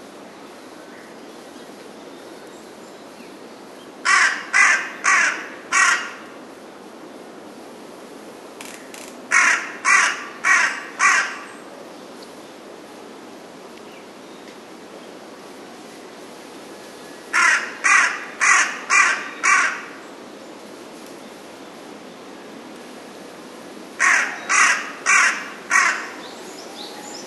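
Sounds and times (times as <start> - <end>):
carrion crow cawing: 4.0 - 6.3, 9.3 - 11.6, 17.3 - 20.0, 24.0 - 26.3.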